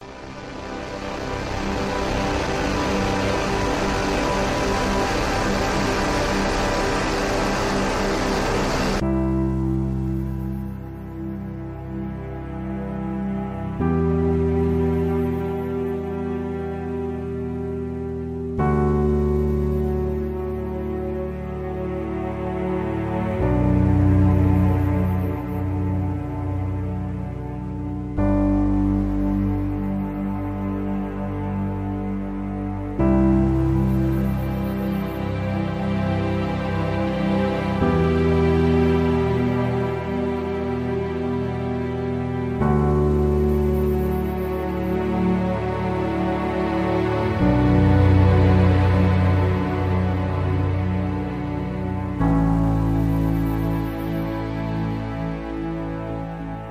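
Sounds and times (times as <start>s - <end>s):
cinematic music: 0.0s - 56.7s.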